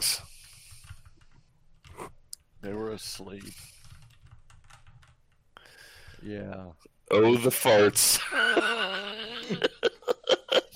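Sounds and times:
typing on a computer keyboard: 0.4s - 2.0s, 3.2s - 5.4s
speech: 2.6s - 3.8s, 6.2s - 10.0s
laughter: 8.0s - 10.7s.

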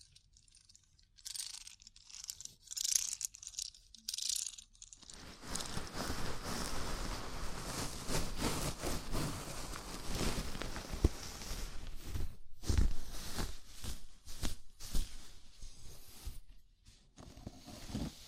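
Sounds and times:
fingers rubbing through hair in a scalp massage: 5.4s - 16.5s.

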